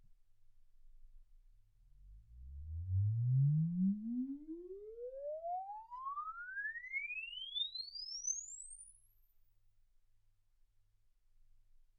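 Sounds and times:
exponential sine sweep from 10 Hz to 24 kHz: 2.4s - 9.2s.

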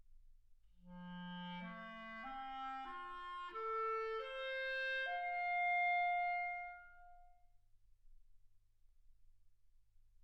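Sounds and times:
clarinet: 0.9s - 7.4s.

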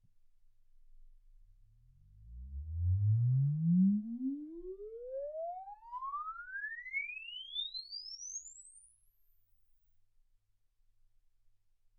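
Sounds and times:
exponential sine sweep from 10 Hz to 24 kHz: 2.1s - 9.6s.

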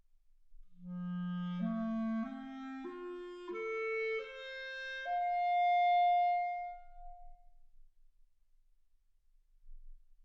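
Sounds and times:
clarinet: 0.8s - 7.4s.

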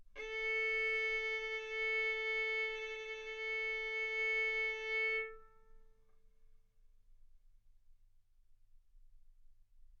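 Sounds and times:
violin arco on A string: 0.2s - 5.8s.

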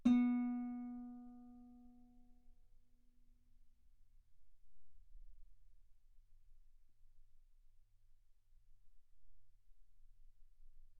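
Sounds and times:
guitar B3 note on B string played fortissimo: 0.0s - 1.4s.

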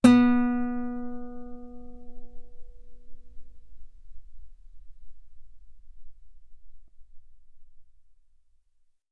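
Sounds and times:
guitar note B3: 0.0s - 5.9s.

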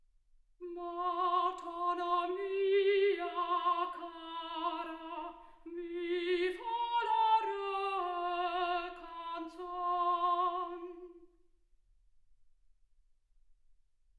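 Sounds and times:
soprano singing: 0.6s - 11.3s.

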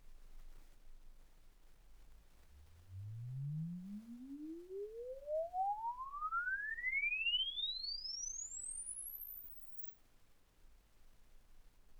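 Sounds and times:
exponential sine sweep from 10 Hz to 24 kHz: 2.5s - 9.9s.

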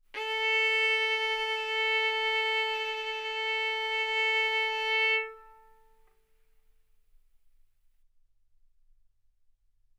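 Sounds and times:
violin bowed mezzo-forte on the A string, A4 and B4: 0.2s - 6.0s.

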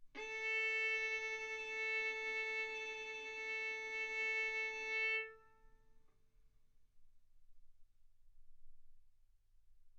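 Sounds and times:
violin arco on A string: 0.1s - 5.8s.

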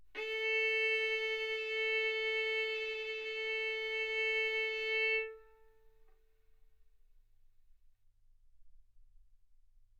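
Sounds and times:
violin arco on A string: 0.2s - 5.9s.

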